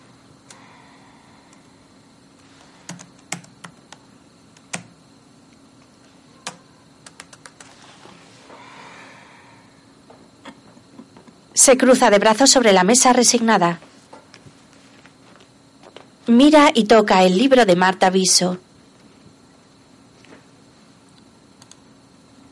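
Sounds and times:
typing and deleting text on a computer keyboard: 2.9s - 4.0s, 4.6s - 4.9s, 6.4s - 7.7s
speech: 11.6s - 13.9s, 16.3s - 18.7s.

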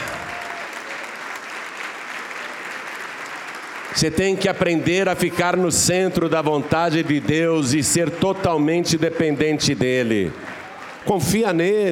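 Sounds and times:
audience applauding: 0.0s - 11.8s
speech: 3.9s - 11.8s.

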